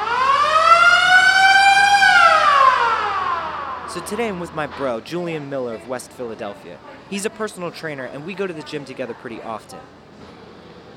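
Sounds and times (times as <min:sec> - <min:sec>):
Planet Fitness gym lunk alarm siren: 0:00.0 - 0:04.8
speech: 0:04.0 - 0:10.0.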